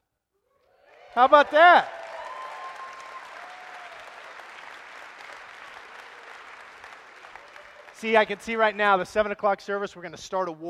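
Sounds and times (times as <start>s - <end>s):
audience applauding: 0.7s - 9.0s
speech: 1.2s - 2.0s, 8.0s - 10.6s.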